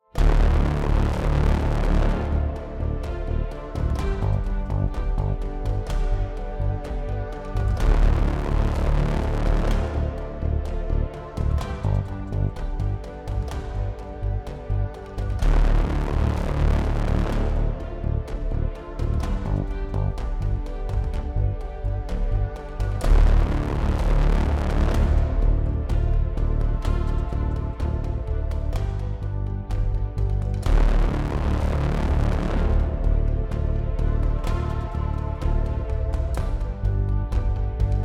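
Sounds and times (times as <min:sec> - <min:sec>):
epic driving cinematic music: 0:00.0 - 0:38.0.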